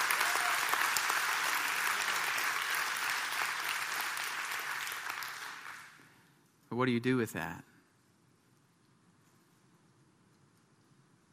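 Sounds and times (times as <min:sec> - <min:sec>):
audience applause: 0:00.0 - 0:06.2
speech: 0:06.8 - 0:07.7.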